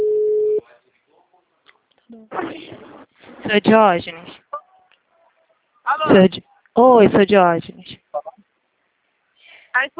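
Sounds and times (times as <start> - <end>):
dropped phone call telephone line tone: 0.0 - 0.6
speech: 3.5 - 4.4, 6.0 - 8.0, 9.8 - 9.9.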